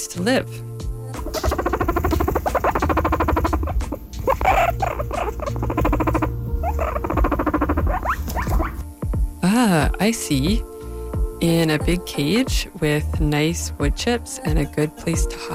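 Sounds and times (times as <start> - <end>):
speech: 0.0 - 1.6, 10.0 - 10.7, 11.4 - 15.5
guinea pig squeaking: 1.2 - 8.8.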